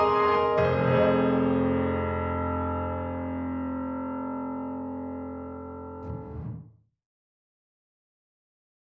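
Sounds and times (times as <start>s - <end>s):
Grand Rhapsody piano with reverse reverb: 0.0s - 6.7s.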